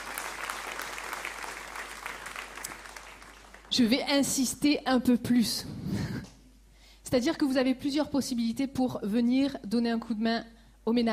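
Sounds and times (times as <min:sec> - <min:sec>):
audience applauding: 0:00.0 - 0:03.7
speech: 0:03.7 - 0:06.3, 0:07.1 - 0:11.1.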